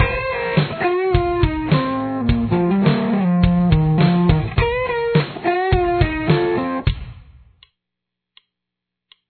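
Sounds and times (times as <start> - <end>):
guitar intro: 0.0 - 7.0.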